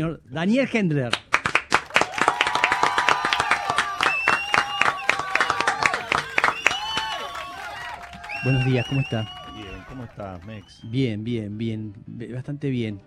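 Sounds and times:
speech: 0.0 - 1.3, 8.4 - 13.0
audience applause: 1.3 - 10.9.

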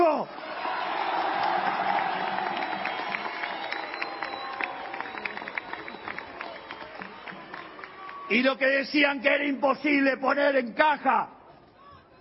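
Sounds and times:
crowd cheering and applauding an economy minister: 0.3 - 9.0
speech: 8.3 - 11.4.

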